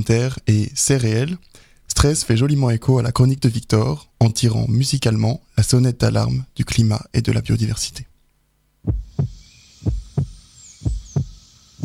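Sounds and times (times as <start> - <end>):
speech: 0.0 - 8.1, 8.8 - 9.0
heartbeat: 8.8 - 11.8.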